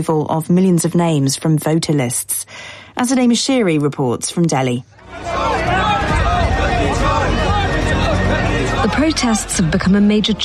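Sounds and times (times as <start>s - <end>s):
speech: 0.0s - 6.6s, 8.9s - 10.4s
protesters chanting slogans in the street: 5.0s - 10.4s.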